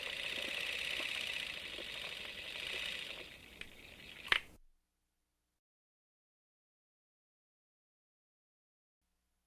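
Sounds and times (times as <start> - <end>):
old clockwork movie camera: 0.0 - 4.6.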